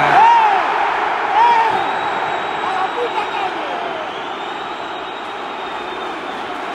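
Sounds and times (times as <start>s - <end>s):
football stadium crowd roaring: 0.0s - 6.7s
whistle-like shrieks: 1.4s - 6.7s.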